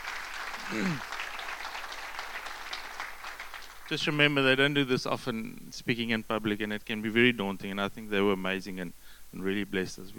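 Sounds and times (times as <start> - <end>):
crowd clapping: 0.0 - 4.5
voiced exclamation: 0.7 - 1.0
speech: 0.7 - 1.2, 3.9 - 10.1.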